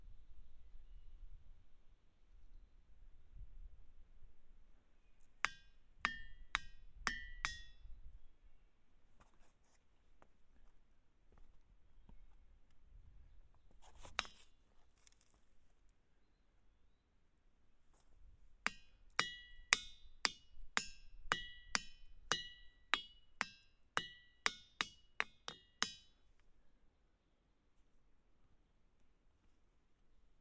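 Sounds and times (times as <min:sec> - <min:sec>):
hammer striking ringing rocks at Ringing Rock State Park: 0:05.4 - 0:07.8, 0:18.7 - 0:26.2
soft scuffs: 0:09.1 - 0:12.4.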